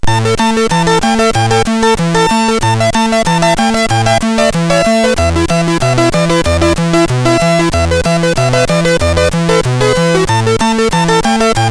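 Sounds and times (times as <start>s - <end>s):
hip hop on a SID MOS6581R3 sound chip: 0.0s - 11.6s.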